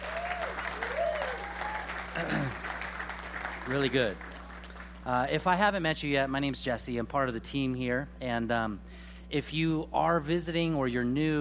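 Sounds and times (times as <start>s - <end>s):
church congregation applauding after worship: 0.0s - 5.1s
low constant hum: 0.0s - 11.3s
speech: 3.7s - 4.3s, 5.0s - 11.3s.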